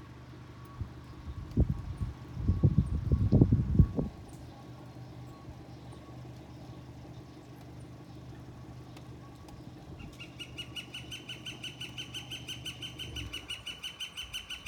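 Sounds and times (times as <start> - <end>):
steady low rumble: 0.0 - 10.5
northern flicker Colaptes auratus calling: 10.0 - 14.6.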